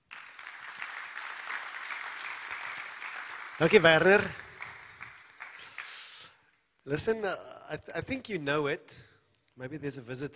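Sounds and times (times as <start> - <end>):
audience applause: 0.0 - 6.2
speech: 3.6 - 4.4, 6.9 - 10.3.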